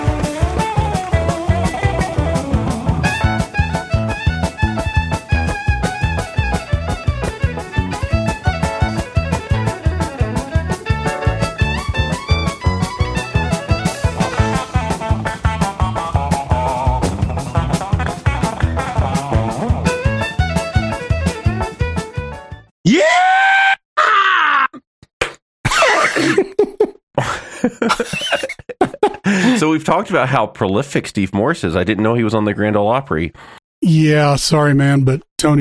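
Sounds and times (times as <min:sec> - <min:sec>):
fast twangy bluegrass guitar tune: 0:00.0 - 0:22.6
groaning, yelling vocal sounds: 0:22.9 - 0:24.8
laughter: 0:26.2 - 0:29.7
speech: 0:29.9 - 0:35.6.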